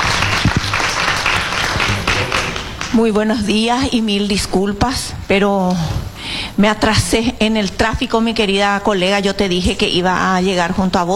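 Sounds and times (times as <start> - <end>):
loud audience applause: 0.0 - 3.0
speech: 3.0 - 11.1.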